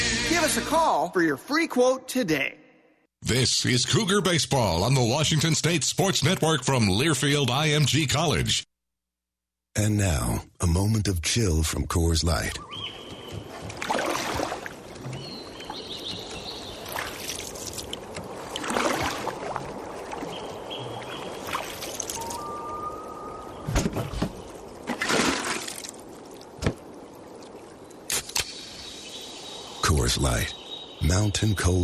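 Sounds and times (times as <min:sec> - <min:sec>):
speech: 0:00.4 - 0:02.6, 0:03.2 - 0:08.7, 0:09.8 - 0:13.0, 0:30.1 - 0:31.8
trickling water: 0:12.2 - 0:31.8
water sloshing and splashing around a canoe: 0:12.6 - 0:28.4.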